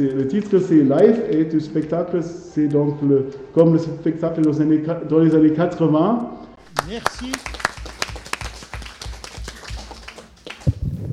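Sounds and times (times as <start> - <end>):
speech: 0.0 - 7.6
warm audience applause: 6.6 - 10.8.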